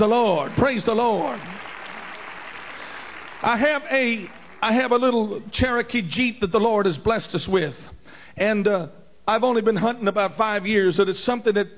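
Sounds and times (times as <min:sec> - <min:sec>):
speech: 0:00.0 - 0:01.6, 0:03.4 - 0:11.7
congregation hand clapping in praise during a church service: 0:00.0 - 0:05.4.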